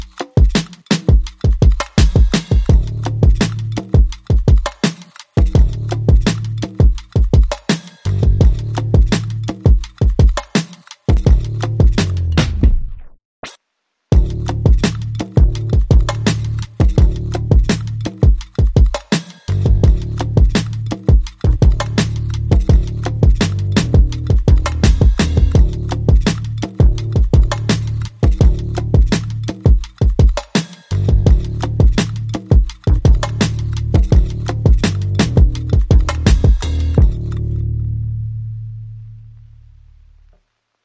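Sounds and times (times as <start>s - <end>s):
drums: 0.0s - 13.2s, 14.1s - 37.4s
bass: 2.7s - 4.0s, 5.6s - 6.8s, 8.1s - 9.7s, 11.2s - 13.2s, 14.1s - 18.3s, 19.5s - 29.7s, 30.9s - 40.4s.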